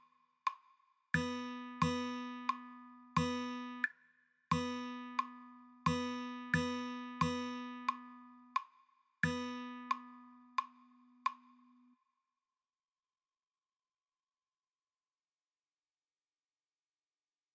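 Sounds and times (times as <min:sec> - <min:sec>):
rhythm practice: 0:01.2 - 0:03.9, 0:04.5 - 0:11.5.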